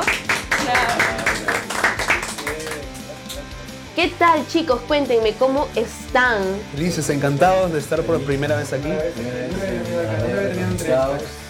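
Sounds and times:
small group clapping: 0:00.0 - 0:04.5
speech: 0:04.0 - 0:11.4.

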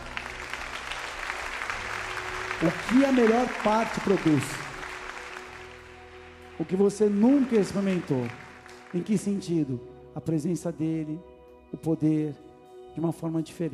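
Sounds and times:
audience applauding: 0:00.0 - 0:09.5
speech: 0:02.6 - 0:04.6, 0:06.6 - 0:12.4, 0:13.0 - 0:13.7.

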